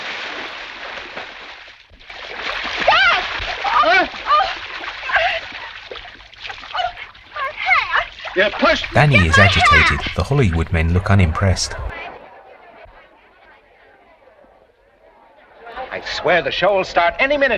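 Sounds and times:
splash of falling into water: 0.0 - 10.1
laughter: 6.7 - 16.1
speech: 8.4 - 11.9, 16.2 - 17.5.

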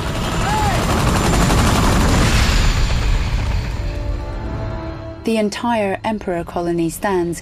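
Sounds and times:
twin rotor helicopter landing: 0.0 - 5.1
speech: 5.3 - 7.4.

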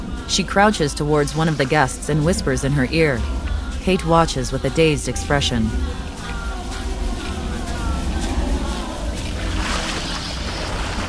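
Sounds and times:
speech: 0.3 - 6.1
water sloshing as arms churn through: 3.1 - 11.0.

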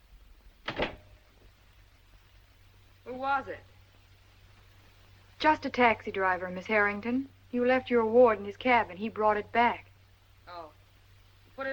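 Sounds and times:
door being shut: 0.6 - 1.2
speech: 3.2 - 3.7, 5.4 - 9.9.

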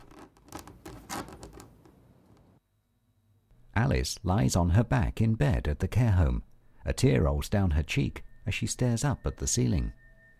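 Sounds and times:
stiff fingernails scratching spasmodically at a bare wood floor: 0.0 - 1.8
speech: 3.8 - 10.0.

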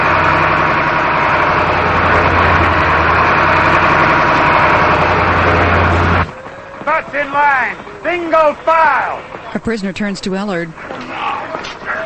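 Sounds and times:
prison bus engine: 0.0 - 12.0
speech: 7.2 - 10.9.

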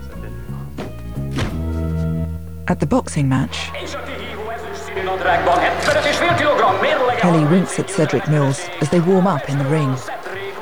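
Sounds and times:
car boot slammed shut: 0.8 - 1.8
speech: 2.7 - 4.1, 5.0 - 10.2
laughter: 3.6 - 10.6.

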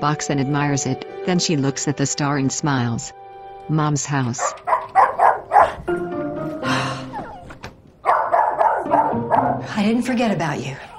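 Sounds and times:
speech: 0.0 - 4.7, 9.6 - 10.9
excited dog barking: 4.4 - 5.8, 8.0 - 9.7
excited dog whining: 4.4 - 5.9, 6.9 - 9.6.

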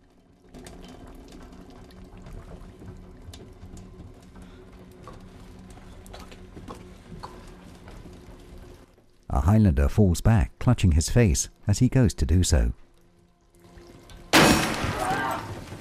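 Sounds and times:
small drips: 0.0 - 9.3, 12.6 - 14.3
water trickling into a boat's hull through four bullet holes: 0.0 - 9.3, 12.3 - 14.4
speech: 9.5 - 12.8.

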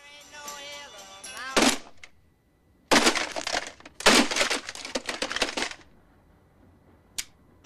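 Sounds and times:
alarm clock being beaten apart with heavy blows: 1.6 - 2.1, 2.9 - 5.8.

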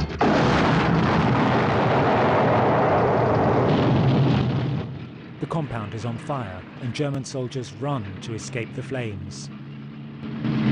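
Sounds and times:
German fuel truck exploding after a shell hit: 0.0 - 7.1
speech: 5.5 - 9.6.

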